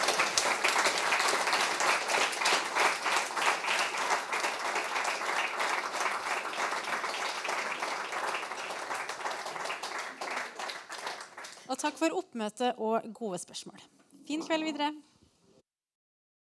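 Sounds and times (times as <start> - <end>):
audience applause: 0.0 - 11.7
speech: 11.8 - 15.1.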